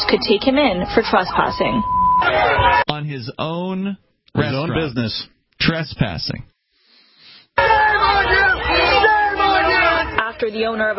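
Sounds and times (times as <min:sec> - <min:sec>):
large crowd shouting and yelling at a protest: 0:00.0 - 0:01.6, 0:02.2 - 0:02.9, 0:07.6 - 0:10.9
speech: 0:00.1 - 0:06.5, 0:10.4 - 0:10.9.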